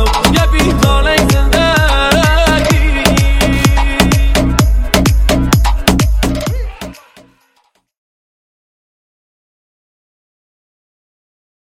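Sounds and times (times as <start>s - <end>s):
remix music: 0.0s - 7.8s.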